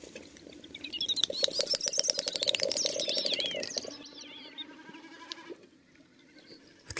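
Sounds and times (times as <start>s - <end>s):
great snipe calling: 0.6s - 4.8s.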